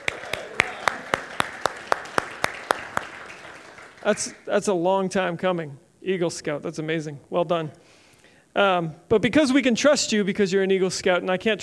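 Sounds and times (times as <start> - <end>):
audience applause: 0.0 - 4.4
speech: 4.0 - 7.9, 8.5 - 11.6.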